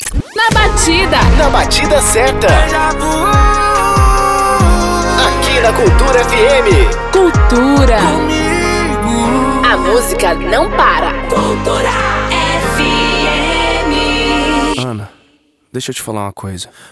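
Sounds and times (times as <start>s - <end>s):
powerful intro music: 0.0s - 14.8s.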